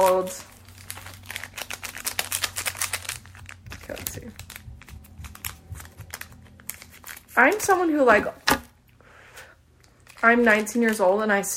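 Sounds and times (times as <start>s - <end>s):
speech: 0.0s - 0.5s, 3.9s - 4.4s, 7.4s - 8.4s, 10.2s - 11.5s
plastic candy packet crinkling as it is torn open: 0.0s - 8.1s, 9.8s - 11.5s.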